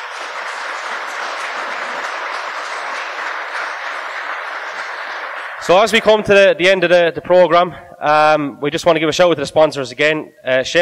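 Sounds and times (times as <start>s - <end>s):
audience applause: 0.0s - 6.4s
speech: 5.6s - 10.8s.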